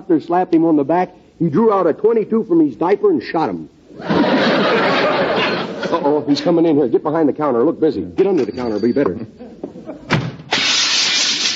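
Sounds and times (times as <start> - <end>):
speech: 0.1 - 4.8, 5.9 - 9.5
laughter: 4.0 - 6.4, 9.3 - 10.1
door slammed: 10.1 - 10.6.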